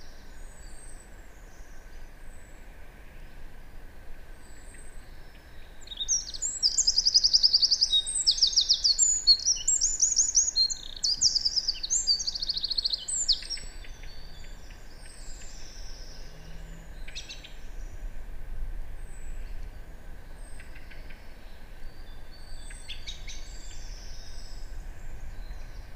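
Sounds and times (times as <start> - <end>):
hiss: 0.0 - 25.9
Eurasian wren song of high notes and rattling trills: 4.4 - 18.1, 20.3 - 25.9.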